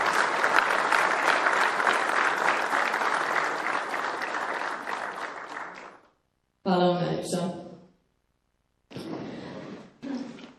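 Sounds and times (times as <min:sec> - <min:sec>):
audience applause at a Bosanska Krupa city council award ceremony: 0:00.0 - 0:06.1
speech: 0:06.7 - 0:07.6.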